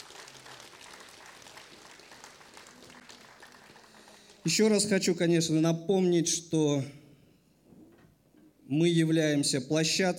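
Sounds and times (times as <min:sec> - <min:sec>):
applause: 0:00.0 - 0:04.6
speech: 0:04.4 - 0:07.0, 0:08.7 - 0:10.1.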